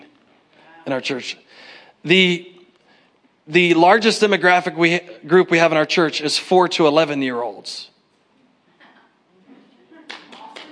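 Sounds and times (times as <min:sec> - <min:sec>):
speech: 0:00.9 - 0:02.5, 0:03.5 - 0:07.9
audience clapping: 0:10.0 - 0:10.7.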